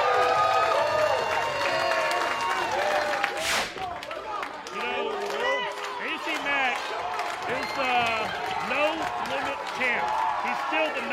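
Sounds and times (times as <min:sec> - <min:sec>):
cheers and shouting voices: 0:00.0 - 0:11.1
large crowd applause: 0:00.0 - 0:11.1.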